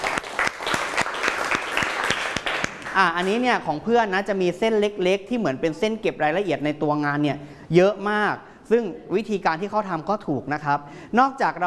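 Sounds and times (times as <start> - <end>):
audience applause: 0.0 - 3.1
speech: 3.0 - 11.6.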